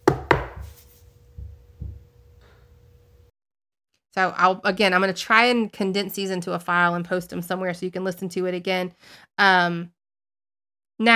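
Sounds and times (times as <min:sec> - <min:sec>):
knocking on a table: 0:00.0 - 0:00.7
speech: 0:04.2 - 0:10.0.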